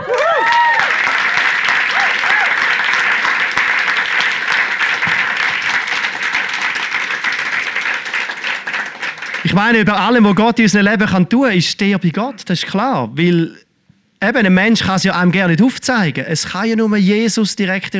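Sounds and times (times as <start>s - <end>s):
audience applause: 0.0s - 10.3s
speech: 9.6s - 13.6s, 14.2s - 17.9s.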